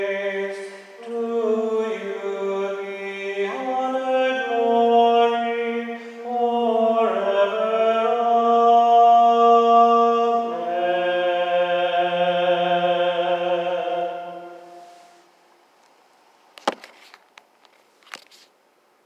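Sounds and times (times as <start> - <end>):
tenor singing a prayer: 0.0 - 15.2.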